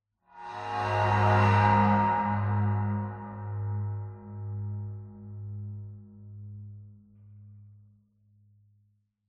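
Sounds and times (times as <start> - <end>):
high ambient cymbal: 0.4 - 4.6.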